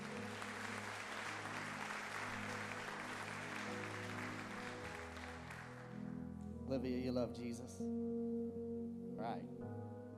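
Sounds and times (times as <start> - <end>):
audience clapping: 0.0 - 6.1
speech: 6.7 - 8.6, 9.2 - 10.0.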